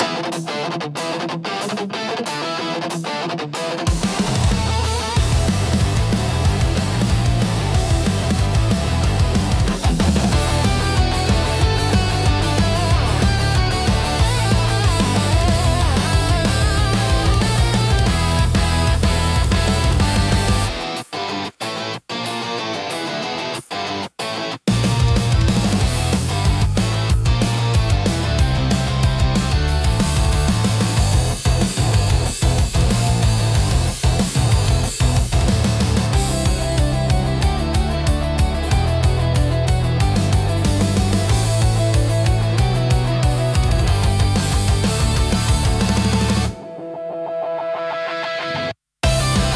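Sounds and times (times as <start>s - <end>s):
fast intense rock music: 0.0s - 49.5s.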